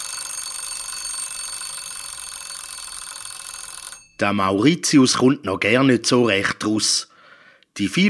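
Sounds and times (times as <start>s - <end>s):
alarm clock bell ringing: 0.0s - 4.4s
speech: 4.2s - 7.1s, 7.8s - 8.0s.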